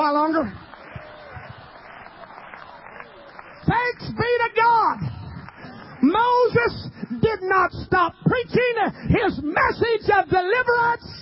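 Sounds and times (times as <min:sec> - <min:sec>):
congregation clapping hands during a church service: 0:00.0 - 0:07.5
speech: 0:06.2 - 0:11.2.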